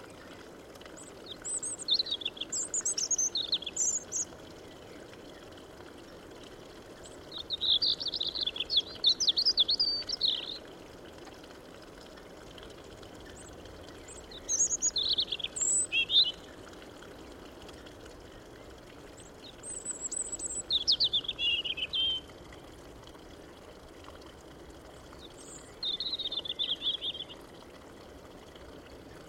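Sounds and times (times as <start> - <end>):
European robin song: 1.2 - 5.5, 7.0 - 10.7, 13.3 - 16.5, 19.2 - 22.3, 25.2 - 27.4.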